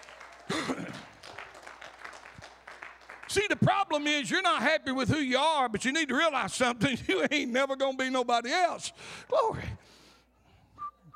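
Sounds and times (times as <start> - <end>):
church audience clapping: 0.0 - 4.0
speech: 3.4 - 10.0.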